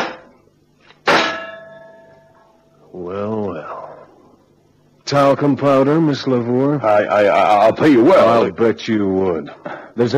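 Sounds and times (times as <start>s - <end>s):
metal cylinder punctured on a jagged car fender: 0.0s - 0.4s, 1.0s - 2.2s
speech: 3.0s - 3.3s, 5.1s - 10.1s.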